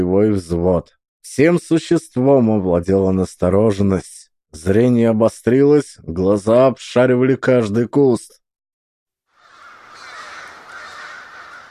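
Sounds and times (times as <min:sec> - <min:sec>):
speech: 0:00.0 - 0:08.4
flock of crows cawing: 0:09.3 - 0:11.6.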